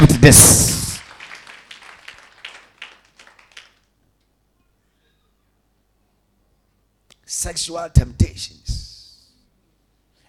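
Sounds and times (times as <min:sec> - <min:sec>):
speech: 0:00.0 - 0:00.7, 0:07.3 - 0:08.9
sparse audience clapping: 0:00.0 - 0:04.0.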